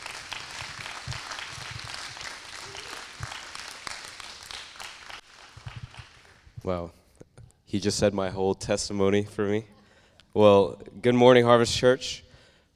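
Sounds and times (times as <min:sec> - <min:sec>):
congregation at Harvest Church applauding a speaker: 0:00.0 - 0:06.6
speech: 0:06.6 - 0:07.0, 0:07.7 - 0:12.2.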